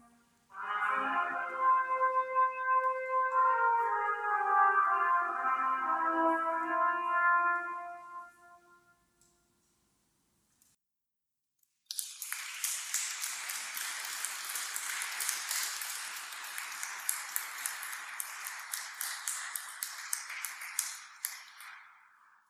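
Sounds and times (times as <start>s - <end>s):
andante trumpet music: 0.0s - 9.2s.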